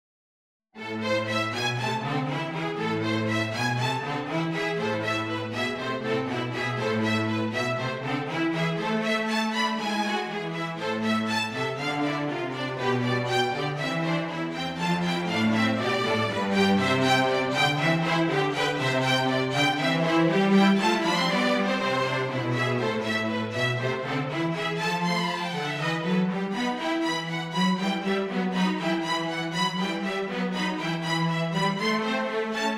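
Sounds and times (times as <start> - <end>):
string trio playing: 0.8 - 32.7.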